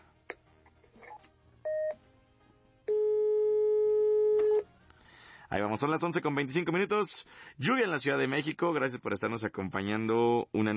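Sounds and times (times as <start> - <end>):
telephone ring tone: 2.9 - 4.6
speech: 5.5 - 10.7.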